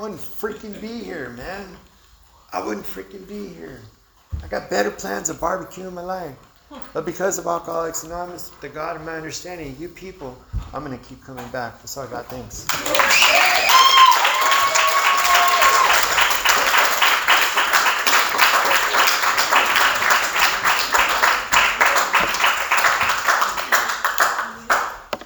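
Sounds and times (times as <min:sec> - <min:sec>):
speech: 0:00.0 - 0:01.9, 0:02.5 - 0:13.8
crowd applause: 0:12.7 - 0:25.2
whoops: 0:12.8 - 0:16.2.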